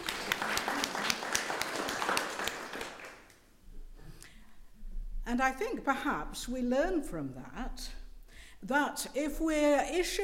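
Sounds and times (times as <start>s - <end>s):
group of people applauding: 0.0s - 3.4s
speech: 5.3s - 8.0s, 8.6s - 10.2s.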